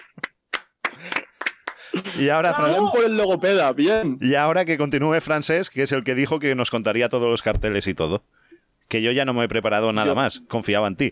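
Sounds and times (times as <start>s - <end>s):
scattered hand clapping from a small group: 0.0s - 2.0s
speech: 2.0s - 11.0s.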